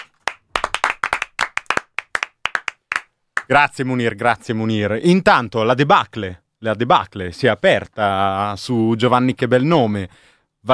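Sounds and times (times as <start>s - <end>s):
applause: 0.0s - 3.5s
speech: 3.5s - 10.7s.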